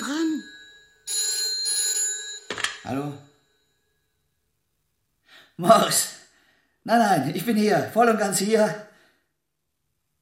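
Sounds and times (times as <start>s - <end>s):
telephone ringing: 0.0s - 4.0s
speech: 2.8s - 3.3s, 5.6s - 6.2s, 6.8s - 8.9s.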